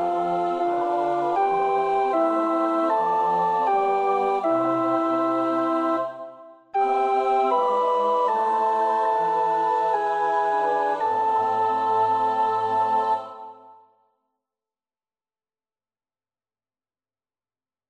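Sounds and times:
alto choir part practice singing: 0:00.0 - 0:13.9.

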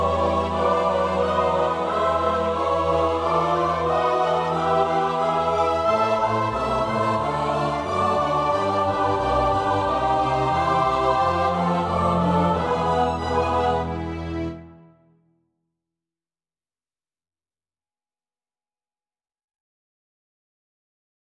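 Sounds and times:
soprano alto tenor bass voices: 0:00.0 - 0:14.7.

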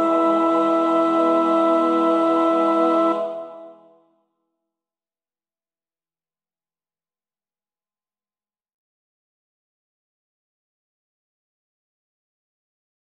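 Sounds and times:
soprano practising a choir part: 0:00.0 - 0:04.0.

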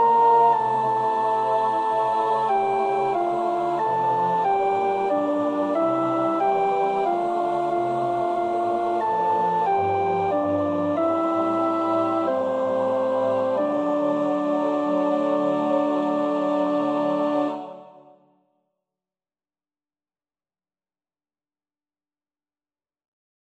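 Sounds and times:
soprano singing: 0:00.0 - 0:18.2.

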